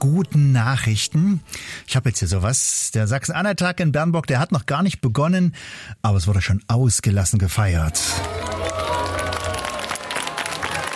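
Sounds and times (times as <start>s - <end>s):
speech: 0.0s - 8.8s
audience applause: 7.9s - 10.9s.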